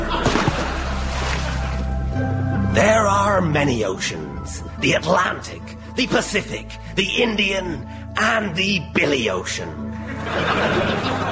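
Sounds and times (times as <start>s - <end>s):
laughter: 0.0s - 2.0s, 10.0s - 11.2s
low watery wash and hum: 0.0s - 2.2s
splash of diving into water: 0.1s - 1.9s
speech: 2.8s - 11.2s.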